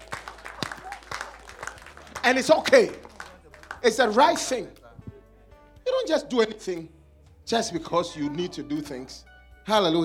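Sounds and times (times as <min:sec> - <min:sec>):
audience clapping: 0:00.0 - 0:04.6
speech: 0:02.2 - 0:03.1, 0:03.8 - 0:04.8, 0:06.1 - 0:10.0.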